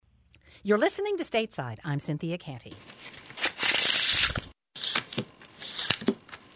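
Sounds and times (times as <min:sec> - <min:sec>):
speech: 0:00.6 - 0:03.2
deck of playing cards shuffled for a game of euchre: 0:02.8 - 0:06.5.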